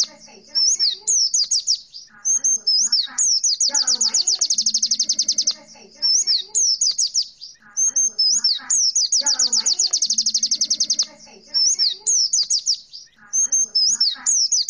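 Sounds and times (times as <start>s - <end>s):
white-eye chirping and warbling: 0.0s - 14.6s.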